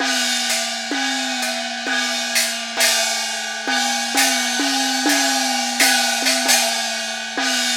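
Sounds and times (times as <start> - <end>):
percussion at 130 BPM: 0.0 - 7.7.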